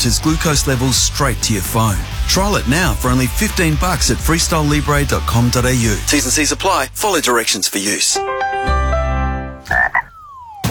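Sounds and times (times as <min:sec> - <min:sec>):
speech: 0:00.0 - 0:08.8
frog croaking: 0:09.7 - 0:10.6.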